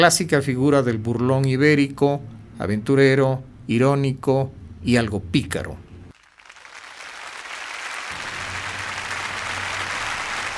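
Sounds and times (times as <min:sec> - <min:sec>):
speech: 0:00.0 - 0:05.8
audience applause in a concert hall: 0:06.2 - 0:10.5.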